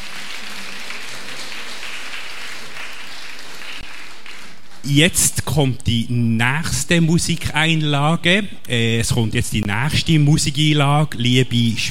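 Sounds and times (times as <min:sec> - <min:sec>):
audience applause: 0:00.0 - 0:04.7
speech: 0:04.8 - 0:11.8.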